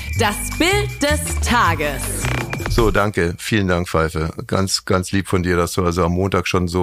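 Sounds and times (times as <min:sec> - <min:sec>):
radio show segment jingle: 0:00.1 - 0:03.9
speech: 0:00.2 - 0:02.1, 0:02.7 - 0:06.8.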